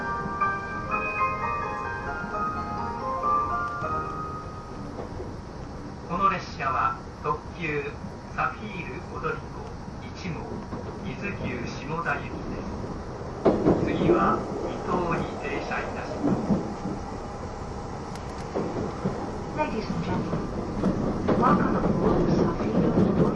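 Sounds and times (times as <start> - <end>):
chime-like melody on the E261 series Saphir Odoriko No. 1 train: 0.0 - 4.9
E261 series Saphir Odoriko No. 1 train rumbling: 0.0 - 23.3
voices on the E261 series Saphir Odoriko No. 1 train: 6.0 - 17.1, 19.4 - 23.3.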